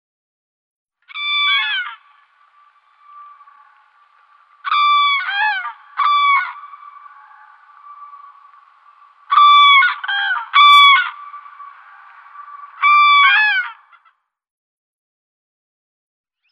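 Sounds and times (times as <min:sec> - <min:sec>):
common crane trumpeting calls: 0:01.2 - 0:14.0.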